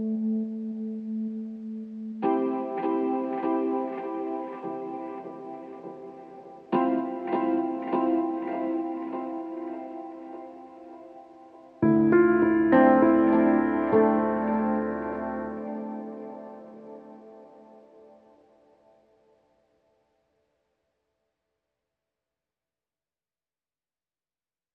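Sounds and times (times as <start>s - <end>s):
Rhodes electric piano: 0.0s - 19.0s.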